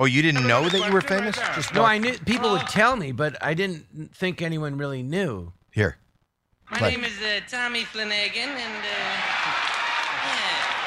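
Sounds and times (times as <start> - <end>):
audience cheering: 0.0 - 2.8, 8.7 - 10.8
speech: 0.0 - 6.0, 6.7 - 9.4.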